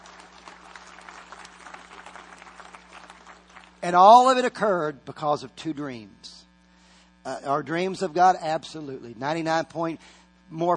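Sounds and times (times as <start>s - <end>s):
audience clapping: 0.0s - 4.2s
speech: 3.8s - 6.4s, 7.2s - 10.7s.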